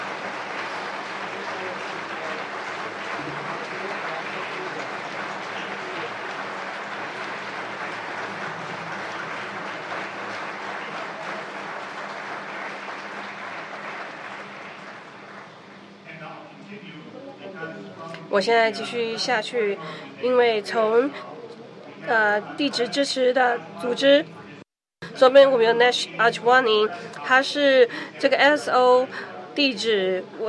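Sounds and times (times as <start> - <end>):
audience applause: 0.0 - 15.9
speech: 18.3 - 21.3, 22.1 - 24.4, 25.2 - 30.4.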